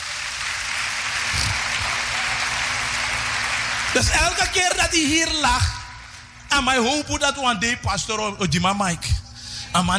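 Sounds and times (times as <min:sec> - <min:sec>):
audience applause: 0:00.0 - 0:04.9
speech: 0:03.9 - 0:05.8, 0:06.5 - 0:09.9.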